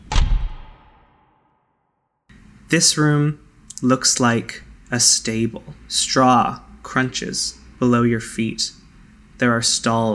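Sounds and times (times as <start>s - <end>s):
door shutting: 0.0s - 1.0s
speech: 2.7s - 8.8s, 9.4s - 10.1s.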